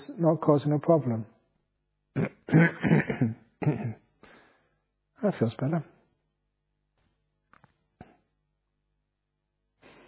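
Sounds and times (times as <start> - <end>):
speech: 0.2 - 1.3, 2.2 - 4.0, 5.2 - 5.9
person clearing throat to shift phlegm from allergies: 2.2 - 4.1.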